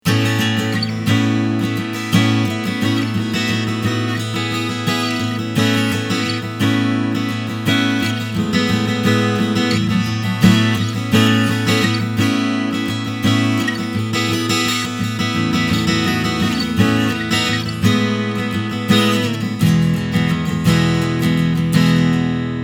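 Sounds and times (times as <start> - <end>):
Ibanez AW80CE guitar recorded with a microphone: 0.0 - 22.6.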